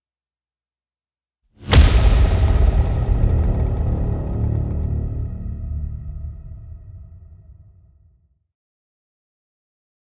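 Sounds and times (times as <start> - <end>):
horror action trailer music: 1.6 - 8.2.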